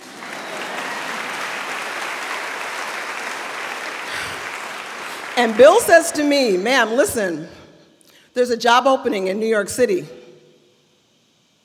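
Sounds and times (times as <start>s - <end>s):
audience applause: 0.0s - 6.1s
speech: 5.4s - 7.6s, 8.4s - 10.2s.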